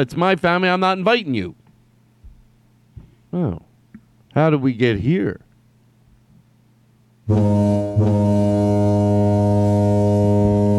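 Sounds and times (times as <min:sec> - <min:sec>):
speech: 0:00.0 - 0:01.6, 0:03.3 - 0:03.7, 0:04.4 - 0:05.4, 0:07.3 - 0:08.2
gentle car horn: 0:07.3 - 0:10.7.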